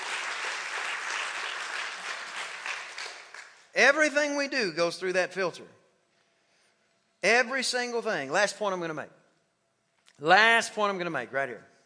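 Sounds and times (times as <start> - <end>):
audience hand clapping: 0.0 - 3.7
speech: 3.8 - 5.8, 7.2 - 9.2, 10.2 - 11.7.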